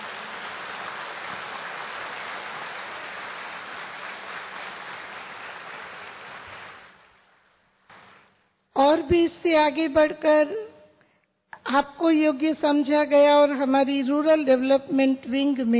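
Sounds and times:
audience clapping: 0:00.0 - 0:07.2
speech: 0:09.1 - 0:10.7, 0:11.7 - 0:15.7.

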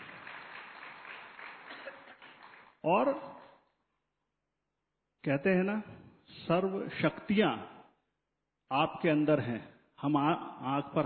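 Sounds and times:
audience applause at a spiritual talk: 0:00.0 - 0:02.8
speech: 0:02.8 - 0:03.4, 0:05.2 - 0:07.7, 0:08.7 - 0:11.0.

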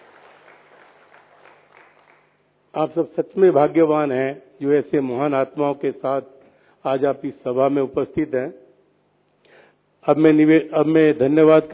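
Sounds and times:
faint applause from an assembly honouring didi ji: 0:00.0 - 0:02.4
speech: 0:02.8 - 0:08.6, 0:10.0 - 0:11.7.

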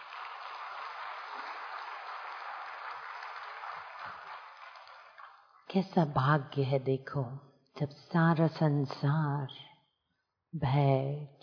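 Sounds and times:
large hall audience applauding loudly: 0:00.0 - 0:05.4
speech: 0:05.7 - 0:09.7, 0:10.5 - 0:11.4.

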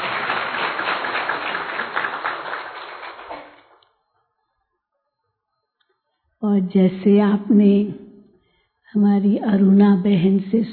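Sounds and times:
audience clapping: 0:00.0 - 0:03.8
speech: 0:06.4 - 0:08.0, 0:08.9 - 0:10.7.

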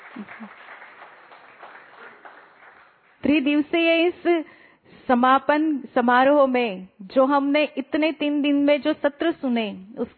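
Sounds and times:
audience clapping: 0:00.0 - 0:03.3
speech: 0:00.2 - 0:00.8, 0:03.2 - 0:10.1.

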